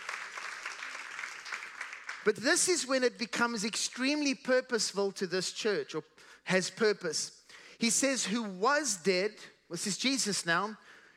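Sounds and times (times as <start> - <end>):
crowd clapping: 0.0 - 2.8
speech: 2.2 - 11.0.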